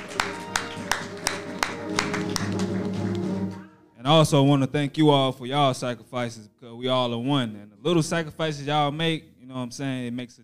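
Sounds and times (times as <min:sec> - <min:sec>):
hand clapping: 0:00.0 - 0:03.6
speech: 0:04.1 - 0:10.4.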